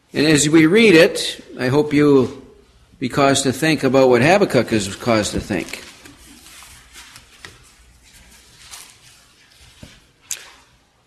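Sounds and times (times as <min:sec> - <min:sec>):
speech: 0:00.1 - 0:02.4, 0:03.0 - 0:05.9
pages of books rustling and turning: 0:04.7 - 0:10.8.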